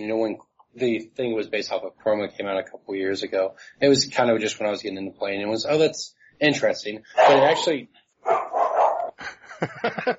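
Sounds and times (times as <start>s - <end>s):
speech: 0.0s - 8.5s, 9.6s - 10.1s
dog barking: 7.2s - 9.2s
laughter: 9.2s - 10.1s.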